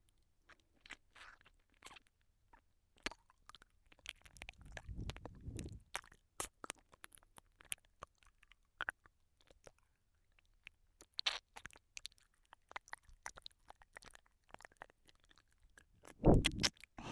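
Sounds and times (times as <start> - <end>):
licking sounds in the right ear: 3.1 - 9.8, 11.0 - 16.9.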